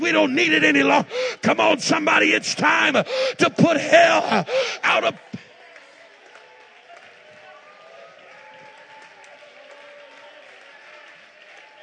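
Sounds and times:
speech: 0.1 - 5.3
light polite audience applause: 4.5 - 11.8.

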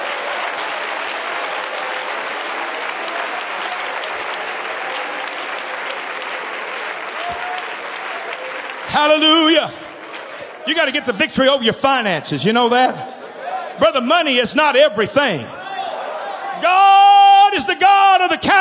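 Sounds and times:
audience hand clapping: 0.0 - 11.7
speech: 8.9 - 9.8, 10.6 - 13.2, 13.8 - 15.6, 17.6 - 18.5.

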